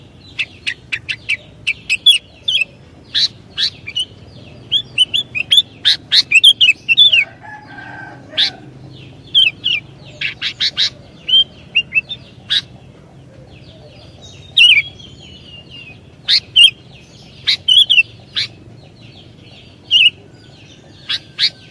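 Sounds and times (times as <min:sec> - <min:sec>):
Sooty-headed bulbul song: 0:00.0 - 0:07.3, 0:09.3 - 0:12.7, 0:14.3 - 0:18.6, 0:19.7 - 0:21.6.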